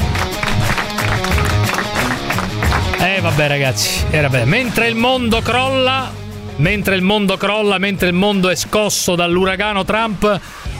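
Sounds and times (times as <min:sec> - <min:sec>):
audience applause: 0:00.0 - 0:03.4
speech: 0:03.1 - 0:10.7.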